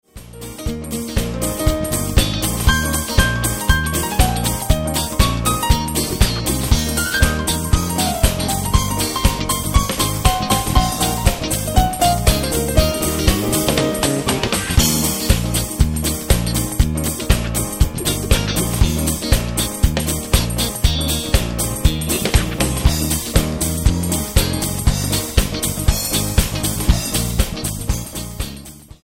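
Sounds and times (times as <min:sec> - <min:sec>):
playback backing track: 0:00.1 - 0:28.9.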